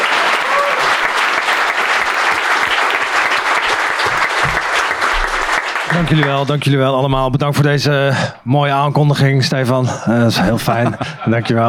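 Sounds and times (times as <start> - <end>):
audience applause: 0.0 - 6.7
speech: 5.9 - 11.6
laughter: 10.2 - 11.6.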